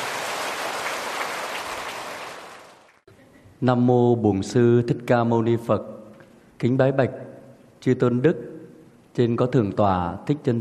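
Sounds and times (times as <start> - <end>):
audience applause: 0.0 - 3.0
speech: 3.6 - 6.0, 6.6 - 7.2, 7.8 - 8.5, 9.2 - 10.5.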